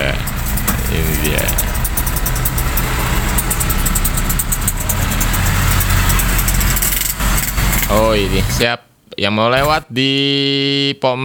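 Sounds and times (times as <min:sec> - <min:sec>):
truck engine running: 0:00.0 - 0:08.6, 0:09.6 - 0:09.8
speech: 0:08.1 - 0:11.2.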